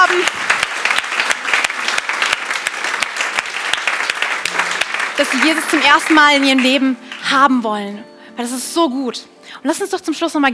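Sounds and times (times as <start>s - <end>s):
audience applause: 0.0s - 7.2s
speech: 5.2s - 10.5s.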